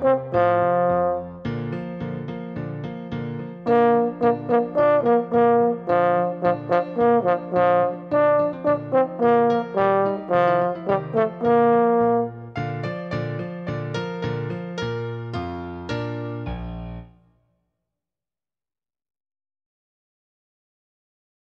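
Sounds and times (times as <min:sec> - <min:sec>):
French horn solo: 0:00.0 - 0:01.5, 0:03.7 - 0:12.5
piano: 0:00.0 - 0:17.4.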